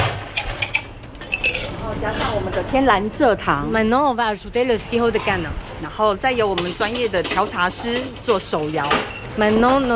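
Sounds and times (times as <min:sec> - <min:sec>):
ice cubes dropped into a glass: 0:01.2 - 0:01.8
speech: 0:01.8 - 0:09.9.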